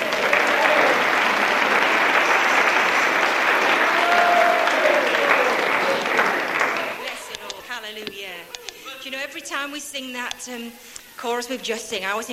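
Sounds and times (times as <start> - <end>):
audience applause: 0.0 - 7.6
speech: 9.8 - 12.3.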